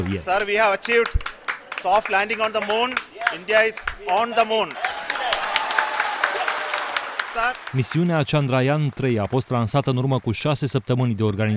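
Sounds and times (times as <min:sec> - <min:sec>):
speech: 0:00.0 - 0:04.8, 0:07.4 - 0:11.5
ISRO mission team applauding Chandrayaan-3 moon landing: 0:00.0 - 0:11.5.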